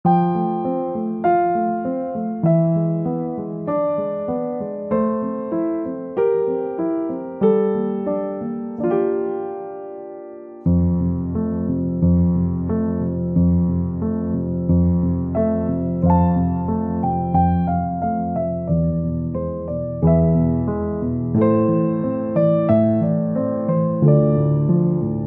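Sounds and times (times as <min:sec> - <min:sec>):
piano: 0:00.0 - 0:25.2.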